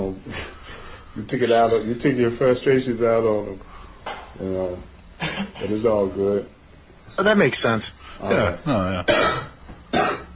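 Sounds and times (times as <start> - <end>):
speech: 1.2 - 3.7, 4.4 - 6.6, 7.2 - 10.2
person coughing: 5.2 - 5.7, 8.2 - 10.3.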